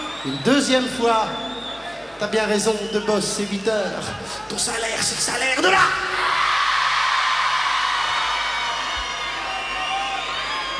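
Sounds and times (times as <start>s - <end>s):
crowd whooping and cheering: 0.0s - 2.2s, 6.0s - 10.7s
speech: 0.2s - 1.5s, 2.2s - 6.4s
crowd applauding: 6.3s - 10.7s.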